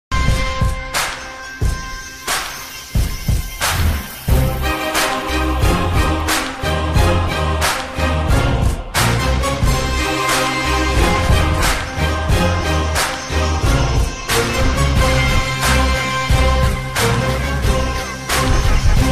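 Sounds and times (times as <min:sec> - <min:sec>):
theme music ringtone: 0:00.2 - 0:19.0.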